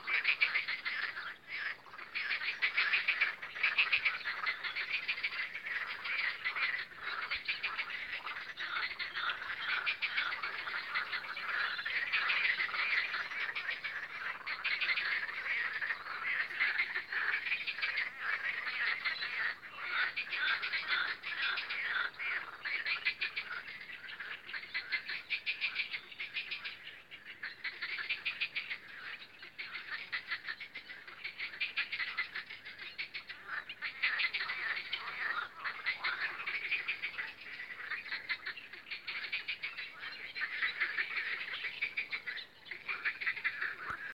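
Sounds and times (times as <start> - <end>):
dense frog chorus croaking: 0.0 - 44.1.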